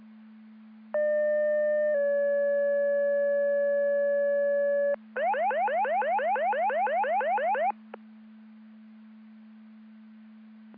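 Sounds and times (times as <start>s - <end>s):
siren: 1.0s - 7.9s.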